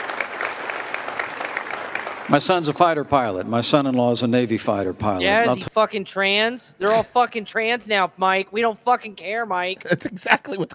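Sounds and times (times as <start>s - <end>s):
smattering of applause: 0.0s - 3.1s
speech: 2.3s - 10.7s.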